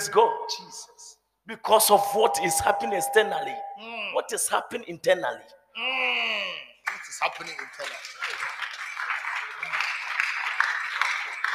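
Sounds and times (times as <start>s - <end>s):
speech: 0.1s - 0.9s, 1.5s - 8.6s
audience clapping hands: 6.9s - 11.5s.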